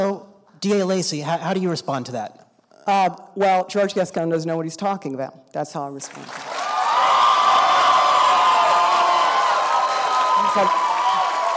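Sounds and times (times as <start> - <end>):
speech: 0.6 - 6.5, 10.6 - 10.8
audience cheering between debate questions: 6.4 - 11.5.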